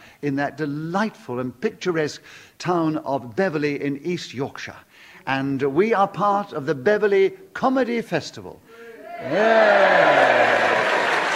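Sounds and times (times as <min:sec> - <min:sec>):
speech: 0:00.2 - 0:10.6
sustained voiced whoop with falling pitch: 0:08.9 - 0:11.3
theatre audience cheering at the Picture Playhouse Theatre: 0:08.9 - 0:11.3.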